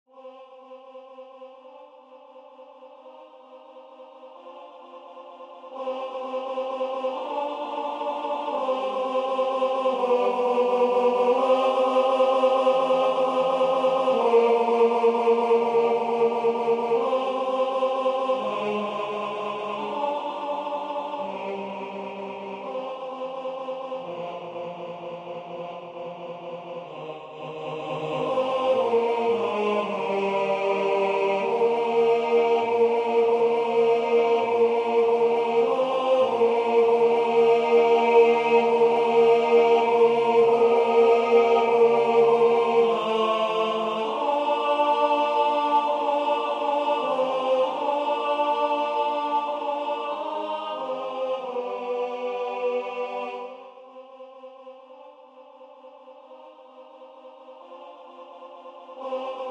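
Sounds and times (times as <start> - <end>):
tenor singing: 5.8 - 53.6.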